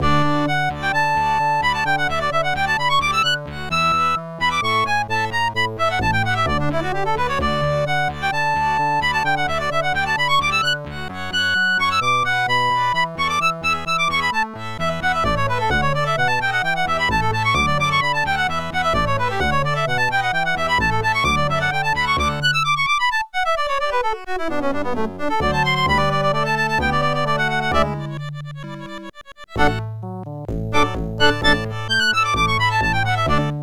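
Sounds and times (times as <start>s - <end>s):
OPL3 FM synthesizer music: 0.0s - 33.6s.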